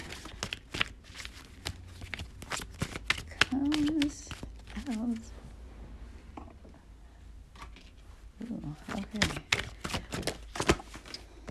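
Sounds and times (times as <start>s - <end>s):
deck of tarot cards being shuffled: 0.0s - 5.3s, 8.8s - 11.5s.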